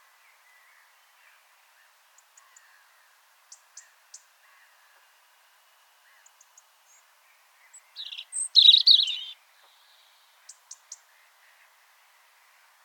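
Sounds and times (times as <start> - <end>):
European robin Erithacus rubecula singing: 7.7 - 11.0.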